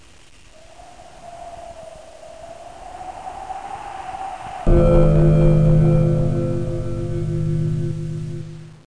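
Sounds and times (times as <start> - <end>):
dong sound: 4.7 - 8.8.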